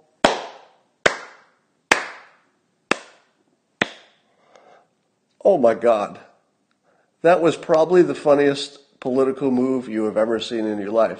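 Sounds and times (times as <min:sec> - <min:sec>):
slow hand claps: 0:00.0 - 0:04.2
speech: 0:05.4 - 0:06.3, 0:07.2 - 0:11.1.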